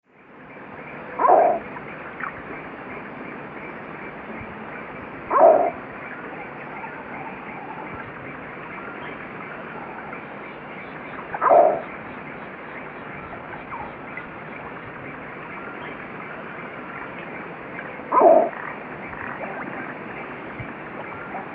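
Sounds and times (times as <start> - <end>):
frog croaking: 0.5 - 21.5
voice: 18.4 - 21.5.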